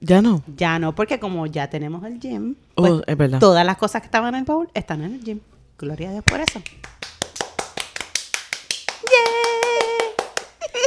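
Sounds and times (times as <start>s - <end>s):
speech: 0.0s - 7.0s
people clapping hands: 6.3s - 10.8s.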